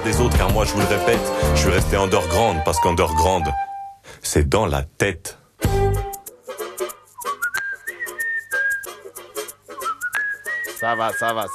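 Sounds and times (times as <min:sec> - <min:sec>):
speech: 0:00.0 - 0:05.7, 0:10.8 - 0:11.5
person whistling a tune: 0:07.1 - 0:11.5.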